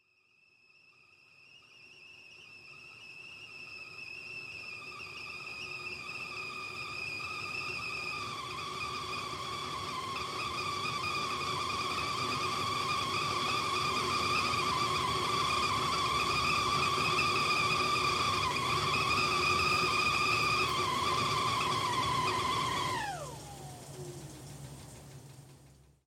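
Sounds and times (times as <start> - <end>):
kettle: 1.7 - 25.9.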